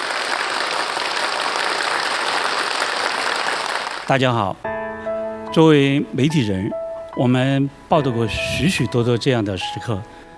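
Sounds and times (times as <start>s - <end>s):
audience applause: 0.0s - 4.1s
speech: 4.1s - 4.7s, 5.5s - 10.2s.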